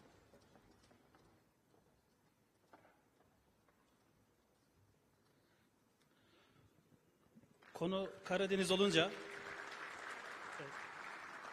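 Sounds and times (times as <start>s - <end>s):
audience applause: 7.6s - 11.5s
speech: 7.8s - 9.4s.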